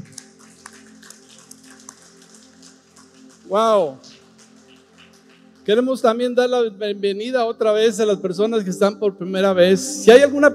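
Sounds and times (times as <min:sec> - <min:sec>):
audience applause: 0:00.0 - 0:05.8
speech: 0:03.5 - 0:04.1, 0:05.6 - 0:10.5.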